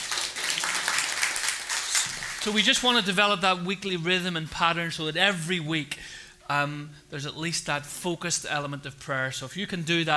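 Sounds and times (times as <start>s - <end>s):
audience clapping: 0.0s - 2.6s
speech: 2.4s - 10.1s.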